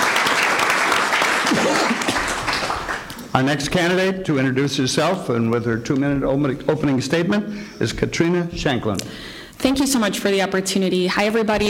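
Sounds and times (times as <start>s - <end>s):
audience applause for a congressional candidate at a forum in Southwest Wisconsin: 0.0s - 3.7s
speech: 3.4s - 11.6s.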